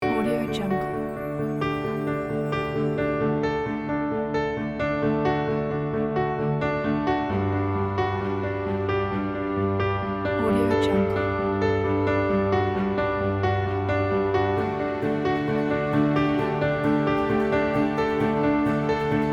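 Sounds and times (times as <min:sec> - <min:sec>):
winning political campaign background music: 0:00.0 - 0:19.3.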